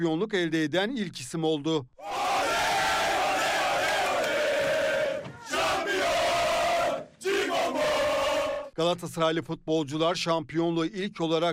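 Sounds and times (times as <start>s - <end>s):
speech: 0.0s - 2.1s, 8.8s - 11.5s
football fans chanting for a player at a stadium: 2.0s - 8.8s.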